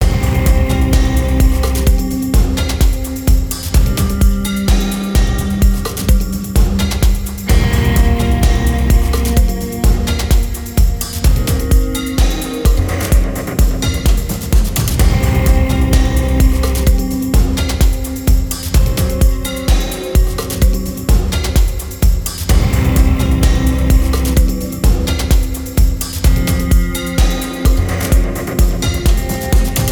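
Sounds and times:
somewhat sad edgy ghostly music becoming industrial: 0.0s - 29.9s.

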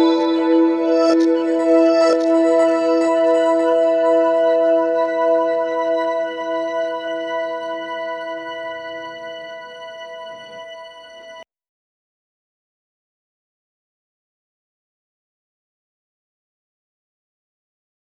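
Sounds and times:
chill dreamy beautiful emotive music: 0.0s - 11.4s.

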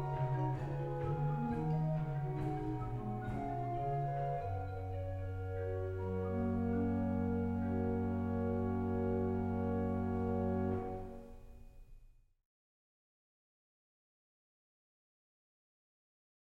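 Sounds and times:
organ music: 0.0s - 11.2s.

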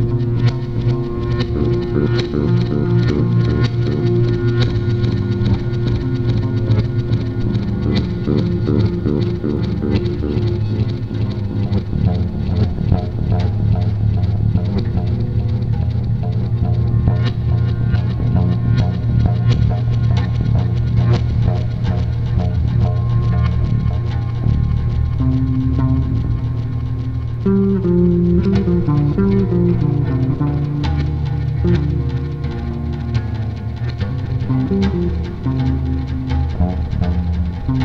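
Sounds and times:
improvised ambient bass jam in the key of D: 0.0s - 37.8s.

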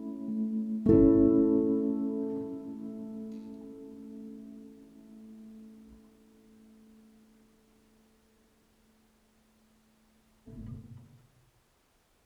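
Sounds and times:
electric piano duet: 0.0s - 7.0s.

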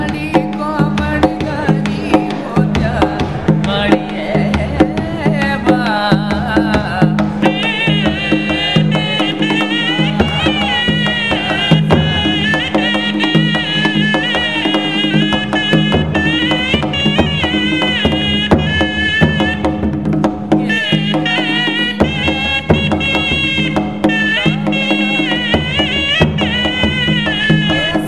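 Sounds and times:
drum playing in a fort: 0.0s - 28.0s
shehnai playing in a fort: 7.3s - 28.0s.

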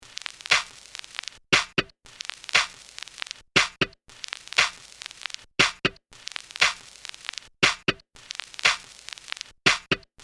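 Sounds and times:
vinyl crackle: 0.0s - 10.2s
snare drum: 0.5s - 0.8s, 1.6s - 1.9s, 2.6s - 2.8s, 3.6s - 4.0s, 4.6s - 4.8s, 5.6s - 6.0s, 6.6s - 6.8s, 7.6s - 8.0s, 8.7s - 8.9s, 9.7s - 10.0s.

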